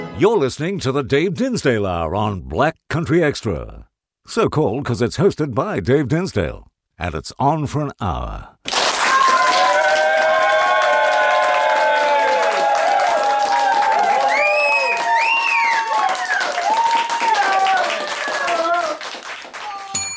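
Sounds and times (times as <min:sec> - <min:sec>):
speech: 0:00.2 - 0:08.9
applause and clapping sound effect: 0:08.6 - 0:20.1.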